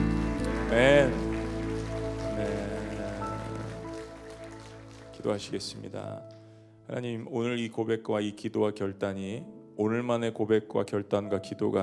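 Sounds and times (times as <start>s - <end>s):
audience applauding: 0.0s - 5.9s
speech: 0.7s - 1.3s, 5.2s - 11.8s.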